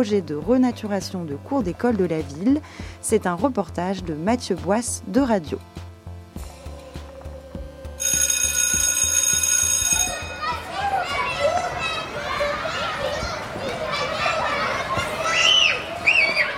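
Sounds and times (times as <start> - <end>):
speech: 0.0 - 5.8
shrill electric bell ringing: 8.0 - 11.1
children shouting and playing at recess: 9.7 - 16.5.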